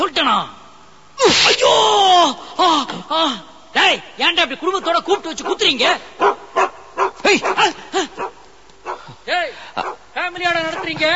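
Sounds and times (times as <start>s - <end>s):
speech: 0.3s - 0.6s, 1.2s - 8.3s, 9.3s - 11.1s
dog barking: 5.1s - 9.2s, 9.8s - 11.1s.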